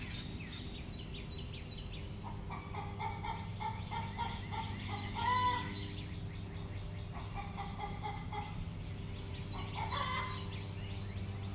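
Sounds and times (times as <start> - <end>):
faint other birds: 0.0 - 11.5
chickens clucking: 2.2 - 5.7, 7.1 - 8.6, 9.5 - 10.4.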